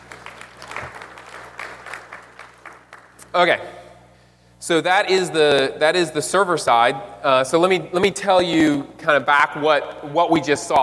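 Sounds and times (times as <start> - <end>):
audience clapping: 0.0 - 3.3
low hum: 0.0 - 10.8
speech: 3.4 - 3.8, 4.6 - 10.8.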